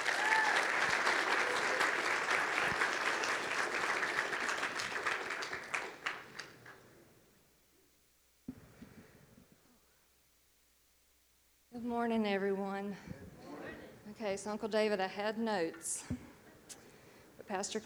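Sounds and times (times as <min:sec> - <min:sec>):
audience applause: 0:00.0 - 0:06.8
speech: 0:11.9 - 0:13.2, 0:14.2 - 0:16.2, 0:17.5 - 0:17.8.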